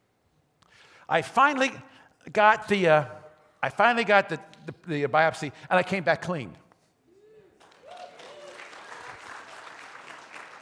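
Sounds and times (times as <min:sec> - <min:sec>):
speech: 0:01.1 - 0:06.6
audience applause: 0:07.6 - 0:10.6.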